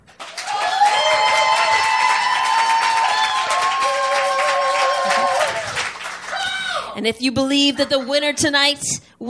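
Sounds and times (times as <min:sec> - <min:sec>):
audience clapping: 0:00.0 - 0:06.8
whoops and cheering voices: 0:00.4 - 0:07.0
speech: 0:07.0 - 0:09.2.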